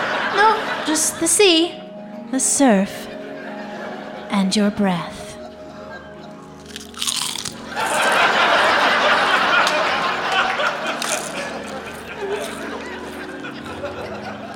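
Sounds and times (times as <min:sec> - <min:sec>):
laughter: 0:00.0 - 0:01.9, 0:03.1 - 0:04.4, 0:05.3 - 0:06.6, 0:07.6 - 0:14.5
speech: 0:00.4 - 0:03.1, 0:04.3 - 0:05.2
person eating potato chips: 0:06.5 - 0:08.1, 0:10.9 - 0:13.1.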